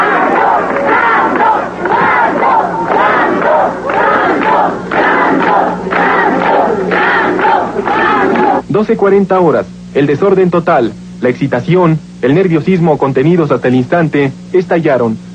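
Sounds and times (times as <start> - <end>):
crowd chanting cheers: 0.0 - 8.6
speech: 8.8 - 15.3.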